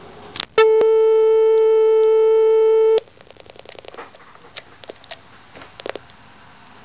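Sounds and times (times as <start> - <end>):
busy signal tone: 0.6 - 3.0.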